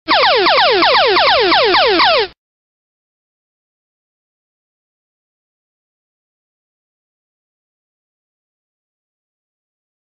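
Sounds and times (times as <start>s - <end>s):
game show daily double sound effect: 0.1s - 2.4s.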